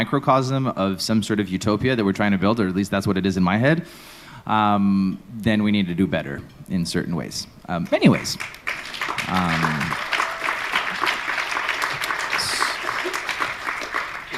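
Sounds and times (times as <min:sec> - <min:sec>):
speech: 0:00.0 - 0:10.1
audience applause: 0:08.4 - 0:14.3.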